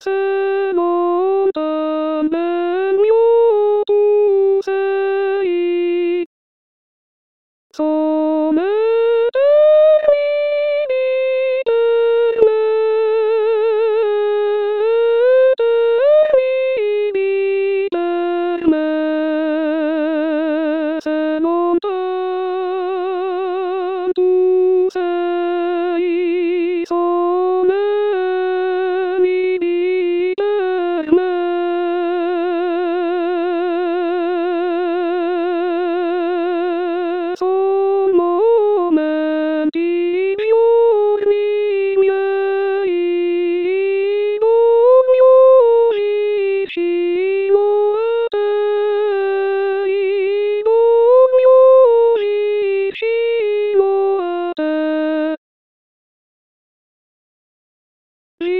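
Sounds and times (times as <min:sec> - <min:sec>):
soprano singing: 0:00.0 - 0:06.3, 0:07.8 - 0:55.4.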